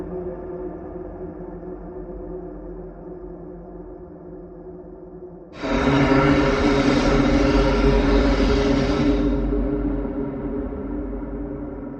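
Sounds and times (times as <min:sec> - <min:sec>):
scream: 0:05.6 - 0:10.0.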